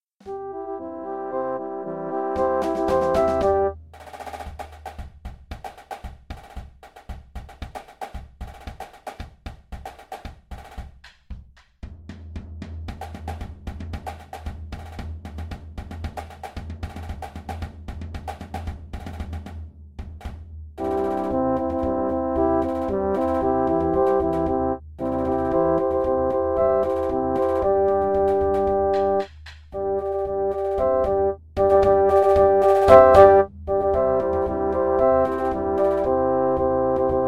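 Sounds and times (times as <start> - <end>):
fanfare: 0.2 - 3.8, 20.8 - 37.2.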